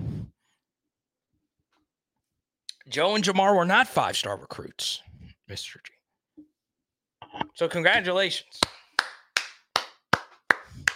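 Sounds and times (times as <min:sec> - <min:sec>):
speech: 0:02.9 - 0:06.0, 0:07.6 - 0:08.8
slow steady hand claps: 0:08.6 - 0:10.9.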